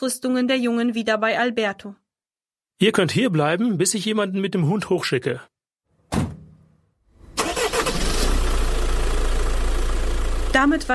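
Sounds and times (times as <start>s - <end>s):
speech: 0.0s - 2.0s, 2.8s - 5.5s, 10.6s - 10.9s
Jeep engine driving away into distance: 7.2s - 10.9s.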